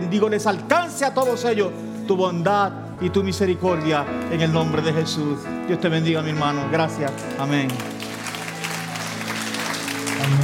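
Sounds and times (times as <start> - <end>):
speech: 0.1 - 8.0
audience clapping: 7.0 - 10.4.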